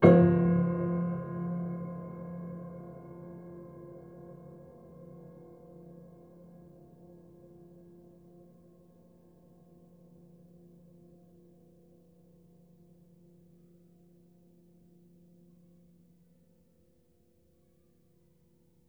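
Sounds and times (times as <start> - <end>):
low piano harmonics with pedal: 0.0 - 3.7.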